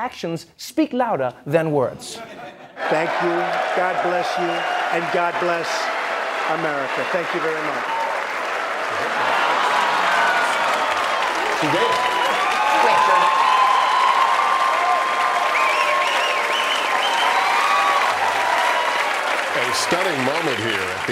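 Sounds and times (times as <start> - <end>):
speech: 0.0 - 8.0, 11.6 - 12.1, 19.7 - 21.0
laughter: 2.2 - 3.4
standing ovation applause on the Republican side: 2.8 - 21.0.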